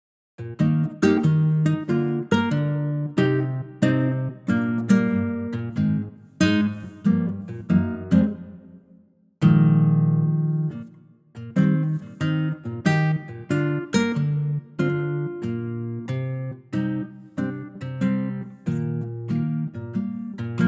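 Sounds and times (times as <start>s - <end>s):
guitar in E flat: 0.4s - 20.6s.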